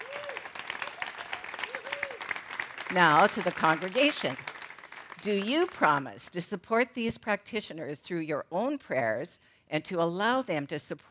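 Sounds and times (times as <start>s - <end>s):
audience applauding: 0.0s - 6.1s
speech: 2.9s - 4.5s, 5.2s - 11.0s.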